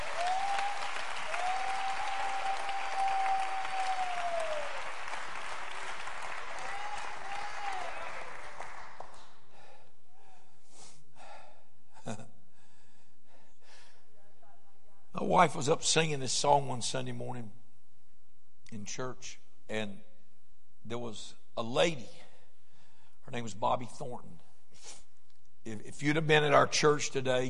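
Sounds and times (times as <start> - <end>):
high drawn-out voice cheering: 0.0 - 5.0, 6.5 - 8.4
audience clapping: 0.0 - 9.4
speech: 15.3 - 17.6, 18.9 - 20.1, 20.9 - 22.2, 23.3 - 24.3, 25.6 - 27.4.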